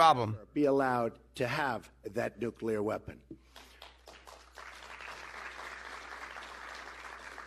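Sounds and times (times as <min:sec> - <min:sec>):
speech: 0:00.0 - 0:03.4
audience applause: 0:03.7 - 0:07.4.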